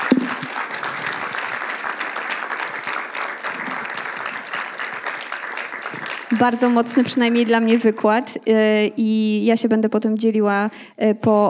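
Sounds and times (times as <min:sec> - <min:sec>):
audience applause: 0:00.0 - 0:08.0
speech: 0:06.4 - 0:11.4.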